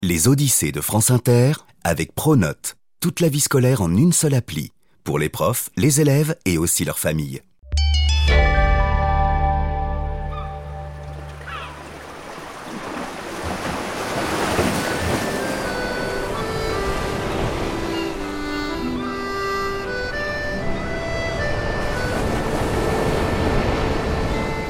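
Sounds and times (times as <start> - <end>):
speech: 0.0 - 8.5
sustained musical tones: 7.6 - 11.5, 14.8 - 24.6
wind: 10.9 - 24.6
ocean surf off Belle-Île in southwest Brittany: 11.0 - 24.6.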